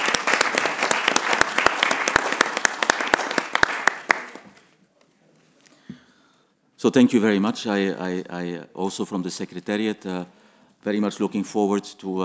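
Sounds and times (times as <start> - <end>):
crowd applause: 0.0 - 4.6
speech: 6.8 - 12.2.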